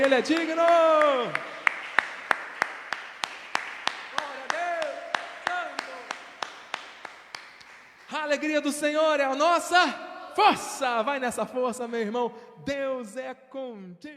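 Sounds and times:
speech: 0.0 - 1.6, 8.3 - 14.1
audience rhythmic clapping: 0.0 - 8.5.

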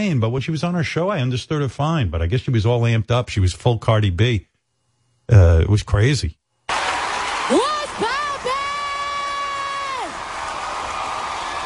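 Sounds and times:
speech: 0.0 - 4.5, 5.3 - 6.4
crowd cheering at the American Music Awards: 6.7 - 11.6
long high whoop at the American Music Awards: 6.8 - 11.6.

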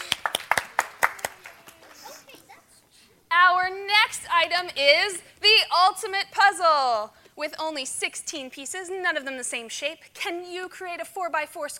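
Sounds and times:
applause: 0.0 - 2.1
speech: 4.4 - 11.7.

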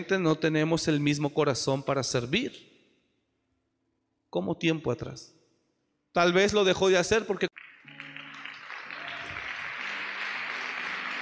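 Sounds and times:
speech: 0.0 - 2.7, 4.3 - 5.4, 6.1 - 7.7
audience applauding: 7.6 - 11.2.

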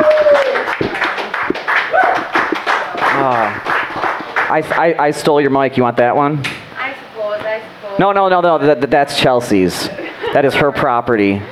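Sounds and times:
crowd clapping: 0.0 - 5.4
laughter: 0.0 - 6.2, 7.8 - 11.4
crowd cheering: 0.0 - 11.4
voices calling out: 0.0 - 11.4
speech: 4.6 - 6.6, 8.0 - 11.4.

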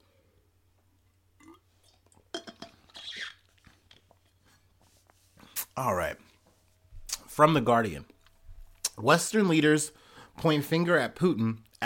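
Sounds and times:
person drinking water: 1.4 - 4.6
speech: 5.8 - 6.3, 7.4 - 8.1, 9.0 - 11.8.

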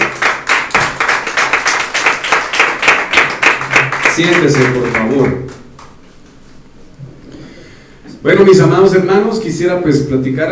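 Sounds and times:
audience clapping: 0.0 - 6.0
speech: 4.2 - 5.6, 8.2 - 10.5.

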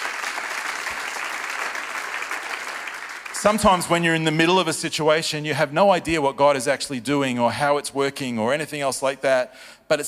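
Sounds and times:
audience applause: 0.0 - 4.5
speech: 3.4 - 10.0.

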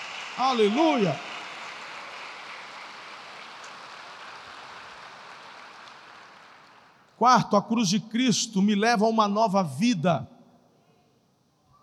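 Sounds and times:
audience applause: 0.0 - 7.1
speech: 0.4 - 1.3, 7.2 - 10.3.

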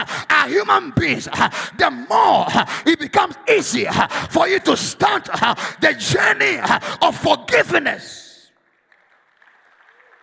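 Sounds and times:
speech: 0.0 - 8.2
audience clapping: 8.5 - 10.2.

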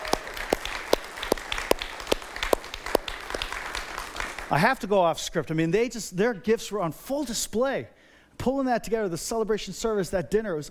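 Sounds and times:
audience applause: 0.0 - 4.6
speech: 4.5 - 10.6.

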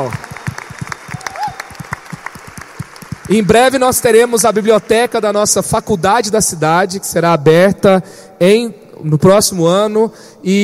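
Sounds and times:
speech: 0.0 - 0.2, 3.3 - 10.6
audience applause: 0.0 - 5.2.

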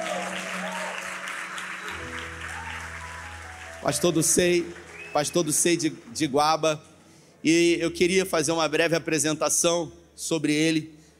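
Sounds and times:
audience applause: 0.0 - 6.6
speech: 3.8 - 11.0.

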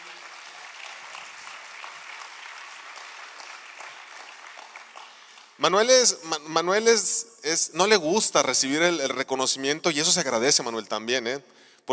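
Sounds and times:
crowd applauding: 0.0 - 6.2
speech: 5.6 - 11.9.

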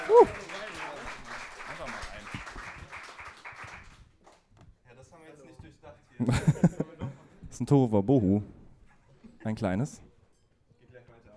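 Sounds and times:
audience applause: 0.0 - 4.5
speech: 0.1 - 0.5, 6.2 - 6.5, 7.6 - 8.6, 9.4 - 10.1
laughter: 6.2 - 7.4.

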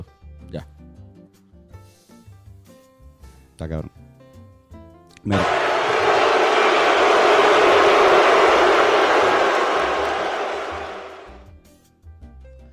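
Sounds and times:
speech: 0.5 - 0.8, 3.6 - 4.0, 5.2 - 5.7
crowd booing sound effect: 5.3 - 11.4.

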